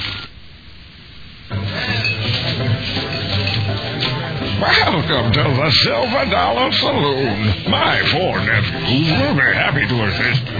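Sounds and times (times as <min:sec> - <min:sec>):
busy noise: 0:00.0 - 0:10.5
footsteps shuffling: 0:01.5 - 0:09.5
speech: 0:04.6 - 0:10.5.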